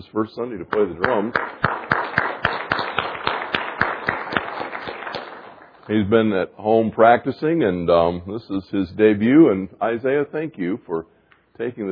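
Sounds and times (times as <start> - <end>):
speech: 0.0 - 1.9, 5.9 - 11.9
round of applause: 1.0 - 5.9.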